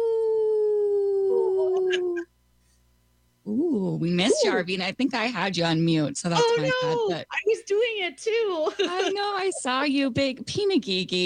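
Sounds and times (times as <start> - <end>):
people imitating wolf howls: 0.0 - 2.2
speech: 4.0 - 11.2.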